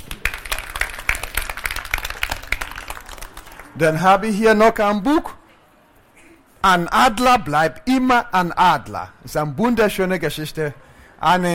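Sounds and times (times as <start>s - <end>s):
audience applause: 0.0s - 3.8s
speech: 3.8s - 5.4s, 6.6s - 11.5s.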